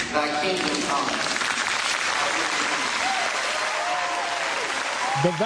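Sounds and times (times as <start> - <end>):
speech: 0.1 - 1.3, 5.2 - 5.4
audience applause: 0.7 - 5.4.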